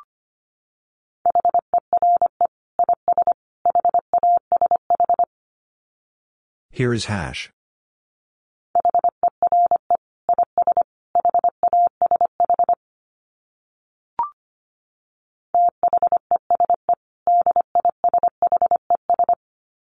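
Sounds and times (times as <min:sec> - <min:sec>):
speech: 0:01.3 - 0:05.2, 0:06.8 - 0:07.6
fast Morse code beeps at 25 wpm in a steady mid-pitched tone: 0:01.3 - 0:05.3, 0:08.8 - 0:12.8, 0:15.6 - 0:19.4.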